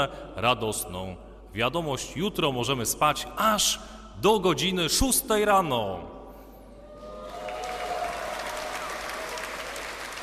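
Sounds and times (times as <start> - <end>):
speech: 0.0 - 6.2
pilgrims applauding: 7.0 - 10.2.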